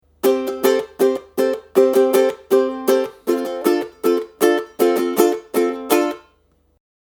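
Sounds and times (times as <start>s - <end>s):
ukulele strumming: 0.0s - 6.4s.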